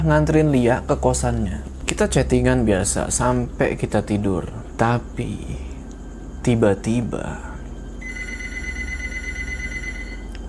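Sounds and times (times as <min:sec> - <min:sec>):
speech: 0:00.0 - 0:05.6, 0:06.4 - 0:07.5
telephone ringing: 0:08.0 - 0:10.4.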